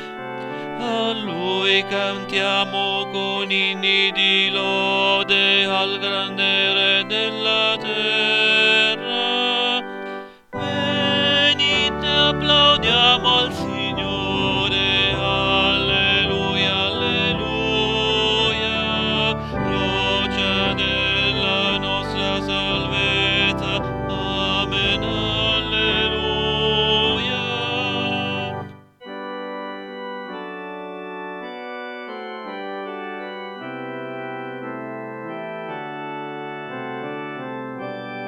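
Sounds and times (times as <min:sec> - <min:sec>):
tenor choir backing: 0:00.7 - 0:28.8.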